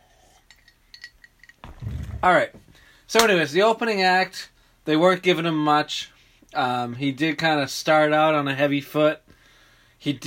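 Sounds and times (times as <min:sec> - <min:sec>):
glass clinking while drinking water: 0:00.5 - 0:01.8
speech: 0:02.2 - 0:09.3, 0:10.0 - 0:10.2.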